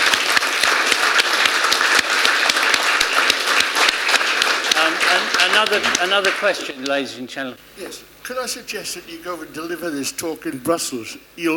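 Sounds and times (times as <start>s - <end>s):
round of applause: 0.0s - 7.0s
speech: 5.6s - 11.5s.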